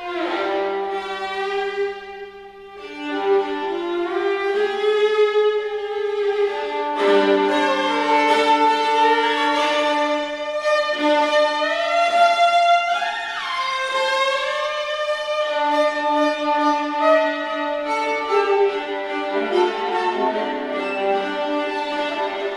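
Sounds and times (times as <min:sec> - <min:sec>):
solo viola: 0:00.0 - 0:22.5.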